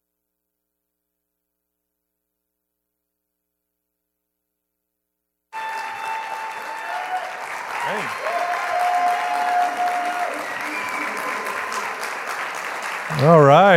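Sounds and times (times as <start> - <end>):
church congregation applauding to welcome a pastor before his sermon: 5.6 - 13.7.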